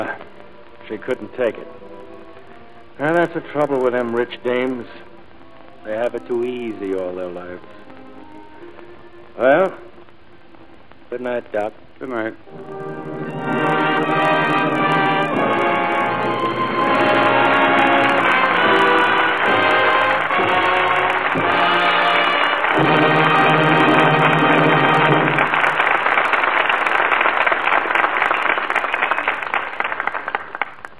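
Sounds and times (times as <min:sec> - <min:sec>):
speech: 0:00.9 - 0:01.8, 0:03.0 - 0:05.1, 0:05.8 - 0:07.8, 0:09.4 - 0:09.9, 0:11.1 - 0:13.6
studio audience applause: 0:12.5 - 0:30.9.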